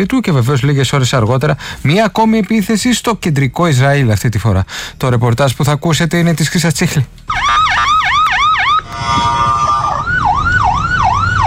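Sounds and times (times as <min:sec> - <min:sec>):
speech: 0:00.0 - 0:08.0
air raid alarm siren in central Israel: 0:07.3 - 0:11.4.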